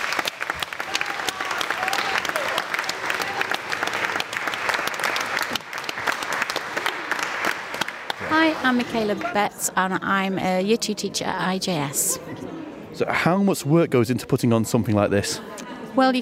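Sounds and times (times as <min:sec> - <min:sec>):
audience applause: 0:00.0 - 0:09.4
speech: 0:08.6 - 0:16.1.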